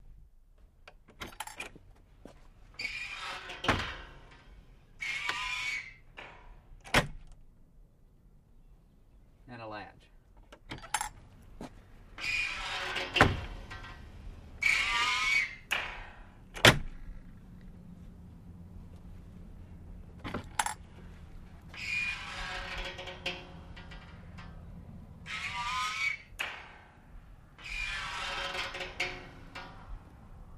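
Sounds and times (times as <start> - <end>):
spring gate opening and closing: 2.8 - 7.3, 12.2 - 17.4, 20.2 - 30.5.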